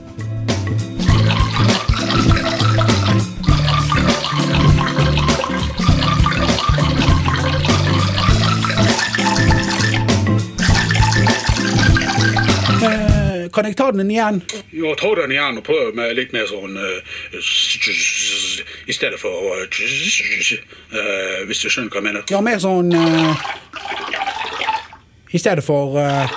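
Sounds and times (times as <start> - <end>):
urine trickling onto glasses and spoons, resonating: 1.0 - 13.2, 22.9 - 25.0, 26.0 - 26.3
speech: 13.6 - 18.2, 18.9 - 23.7, 25.3 - 26.3.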